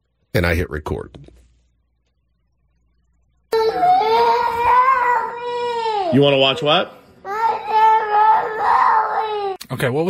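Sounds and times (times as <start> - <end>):
speech: 0.4 - 1.4, 6.1 - 7.0, 9.7 - 10.0
child screaming and crying: 3.5 - 6.2, 7.3 - 9.6.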